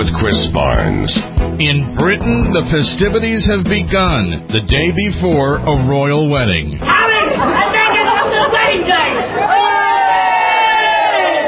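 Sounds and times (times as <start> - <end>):
speech: 0.0 - 7.8
crowds gathering before a royal wedding: 6.8 - 11.4.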